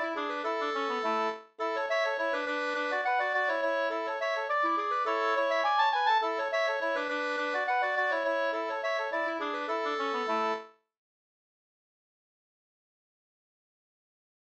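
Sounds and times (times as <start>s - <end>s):
two-part brannvinspolska tune: 0.0s - 10.7s.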